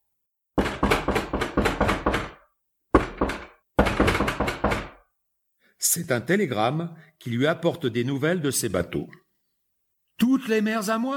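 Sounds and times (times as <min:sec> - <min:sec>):
knocking on a door: 0:00.6 - 0:05.0
speech: 0:06.0 - 0:09.2, 0:10.4 - 0:11.1.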